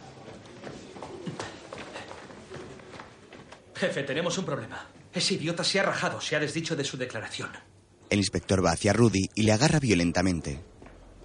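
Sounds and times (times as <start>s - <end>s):
policeman's running footsteps: 0.0s - 3.8s, 10.6s - 11.2s
speech: 3.8s - 10.7s.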